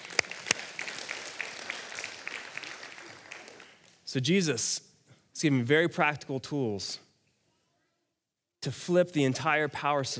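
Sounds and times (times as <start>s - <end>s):
audience round of applause: 0.0s - 4.0s
speech: 4.1s - 7.1s, 8.6s - 10.1s.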